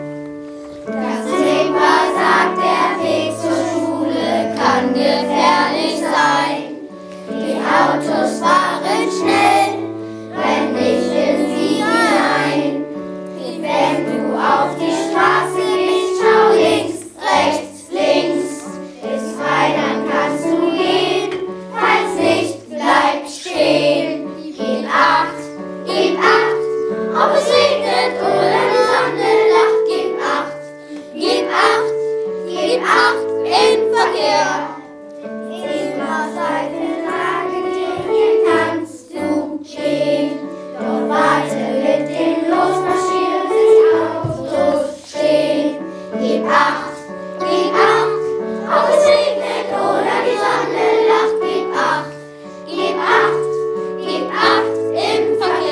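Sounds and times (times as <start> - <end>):
school classes 3a and 3b singing: 0.8 - 55.7.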